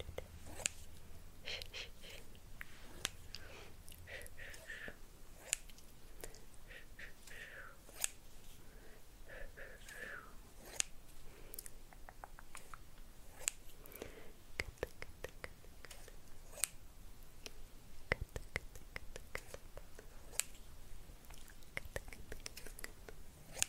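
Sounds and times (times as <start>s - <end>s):
faint low hum: 0.0s - 23.6s
scissors clicking and snipping: 0.1s - 0.9s, 2.9s - 3.4s, 5.4s - 6.4s, 7.9s - 8.2s, 10.6s - 13.7s, 14.6s - 16.8s, 18.2s - 20.6s, 21.6s - 23.6s.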